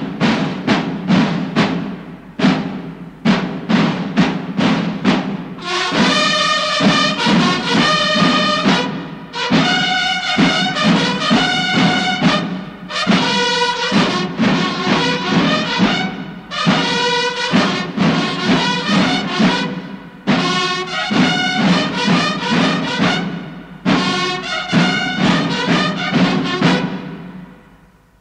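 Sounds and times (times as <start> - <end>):
instrumental music: 0.0 - 28.1.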